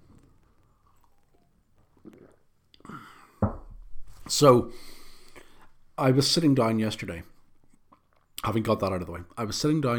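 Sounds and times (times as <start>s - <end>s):
sipping coffee: 0.0s - 3.0s
speech: 4.3s - 4.9s, 6.0s - 7.3s, 8.4s - 9.9s.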